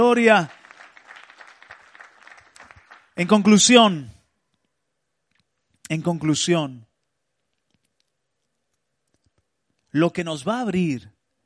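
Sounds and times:
speech: 0.0 - 0.6, 3.2 - 4.2, 5.9 - 6.9, 10.0 - 11.1
audience applause: 0.0 - 3.2.

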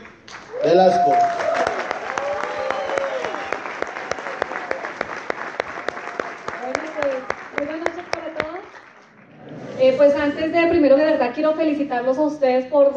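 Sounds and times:
audience applause: 0.0 - 9.8
crowd whooping: 0.4 - 7.8
speech: 0.6 - 1.4, 10.0 - 12.9.

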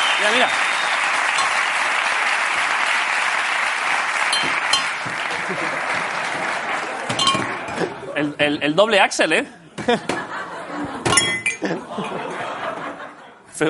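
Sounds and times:
audience applauding: 0.0 - 8.0
speech: 0.2 - 0.7, 8.2 - 10.2
laughter: 5.0 - 8.4, 9.6 - 13.6.

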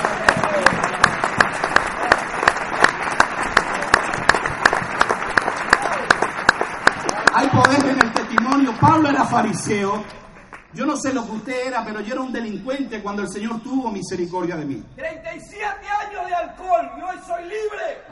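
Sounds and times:
loud audience applause: 0.0 - 10.8
speech: 9.3 - 18.1.

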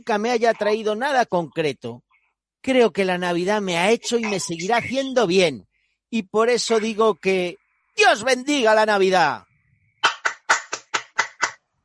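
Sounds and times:
speech: 0.0 - 2.0, 2.6 - 9.5
person clapping hands: 10.0 - 11.6.

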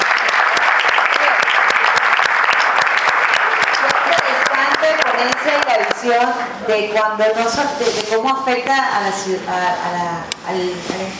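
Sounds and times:
audience applause: 0.0 - 6.0
speech: 6.0 - 11.1.

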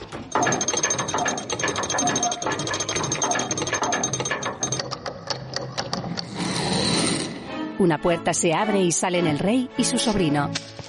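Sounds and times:
lever operating a hidden mechanism with ratcheting clicks and gears: 0.3 - 7.3
speech: 7.8 - 10.7.

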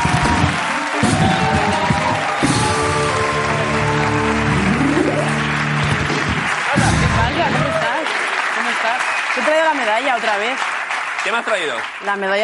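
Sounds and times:
crowd cheers and whoops: 0.0 - 9.6
crowd applause: 0.0 - 12.4
speech: 9.7 - 12.4.

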